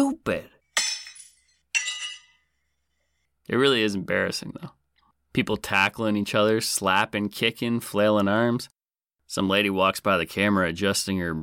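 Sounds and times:
speech: 0.0s - 0.5s, 3.5s - 11.4s
glass being thrown and breaking: 0.8s - 2.4s.

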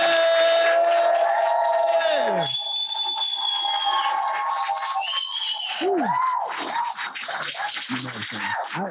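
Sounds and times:
audience cheering and whooping: 0.0s - 7.0s
audience applause: 0.0s - 8.9s
whistles: 1.7s - 6.9s.

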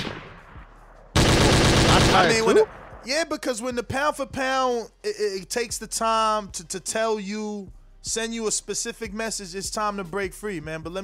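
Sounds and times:
rapid gunfire sound effect: 0.0s - 0.4s, 1.2s - 2.9s
speech: 2.2s - 11.0s.

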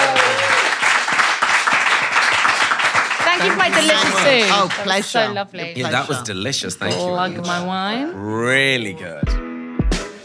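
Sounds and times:
round of applause from a small group: 0.0s - 5.3s
speech: 3.4s - 9.4s.

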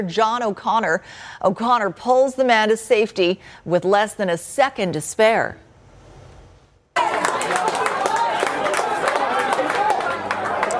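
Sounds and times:
speech: 0.0s - 5.6s
excited voices cheering: 7.0s - 10.7s
witnesses applauding: 7.0s - 10.7s.

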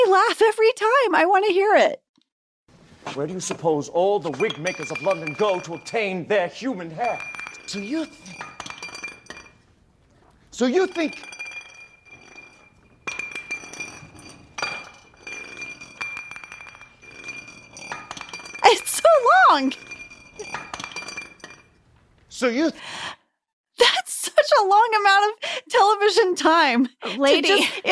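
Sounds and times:
speech: 0.2s - 2.1s, 3.0s - 8.7s, 10.6s - 11.4s, 18.7s - 19.9s, 22.4s - 23.2s, 23.8s - 27.9s
glass bottle rolling across the floor: 3.2s - 22.0s.

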